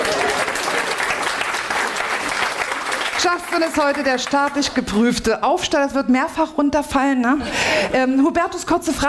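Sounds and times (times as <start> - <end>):
audience applause: 0.0 - 4.6
speech: 3.2 - 9.0.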